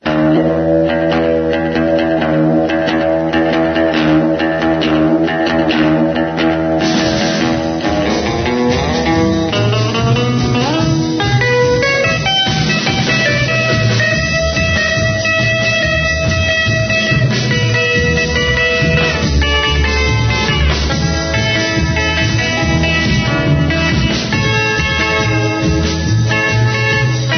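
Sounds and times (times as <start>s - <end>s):
bass: 0.0s - 27.3s.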